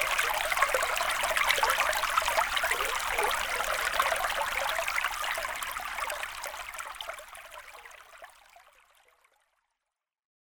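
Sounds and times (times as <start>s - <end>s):
creek flowing: 0.0s - 7.4s.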